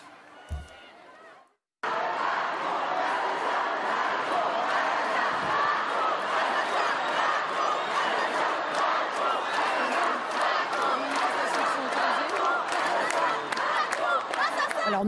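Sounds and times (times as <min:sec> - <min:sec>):
protest crowd chanting a slogan: 0:00.0 - 0:15.0.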